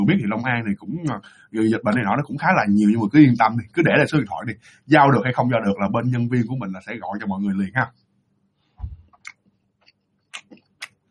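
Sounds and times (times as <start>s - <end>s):
speech: 0.0s - 8.0s
mouth clicks: 9.1s - 11.0s
chewing a coconut mooncake: 9.2s - 11.0s.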